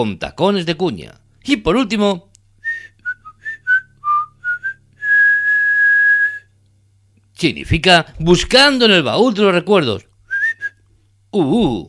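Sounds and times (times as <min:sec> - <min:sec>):
speech: 0:00.0 - 0:02.9, 0:07.4 - 0:10.1, 0:11.3 - 0:11.8
human whistling: 0:02.6 - 0:06.5, 0:10.3 - 0:10.8.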